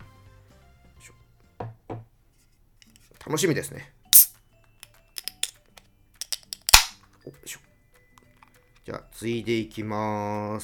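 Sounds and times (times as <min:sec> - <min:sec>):
speech: 0:03.3 - 0:04.0, 0:09.2 - 0:10.6
can of Yebisu Hop Drip beer being opened: 0:05.2 - 0:05.5, 0:06.2 - 0:06.9.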